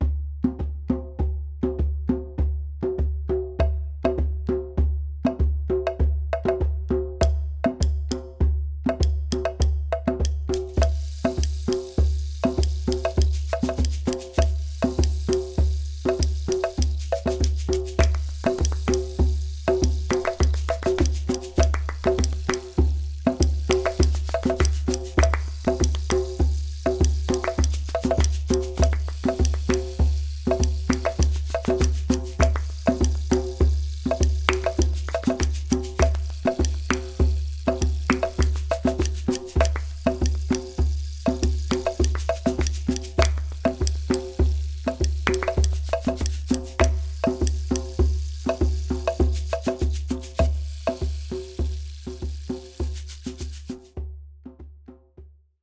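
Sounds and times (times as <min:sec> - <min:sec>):
percussion: 0:00.0 - 0:55.6.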